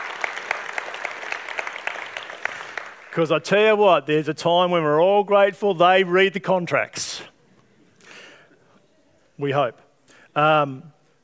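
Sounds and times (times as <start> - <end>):
round of applause: 0.0 - 3.2
speech: 3.2 - 7.3, 9.4 - 9.8, 10.4 - 11.0.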